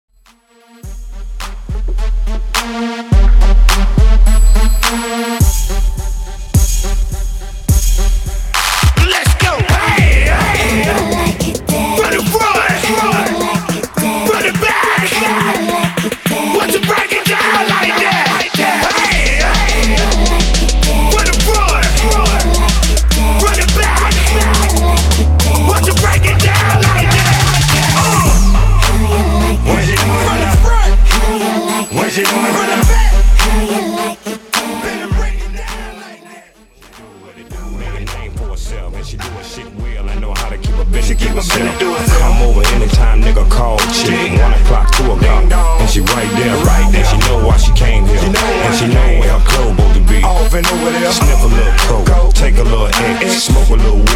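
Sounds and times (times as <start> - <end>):
epic intro music: 0.5 - 54.1.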